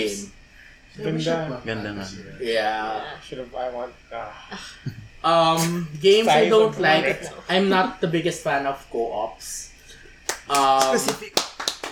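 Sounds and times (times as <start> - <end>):
speech: 1.0 - 9.7, 10.5 - 11.5
hand claps from one person: 10.2 - 11.8.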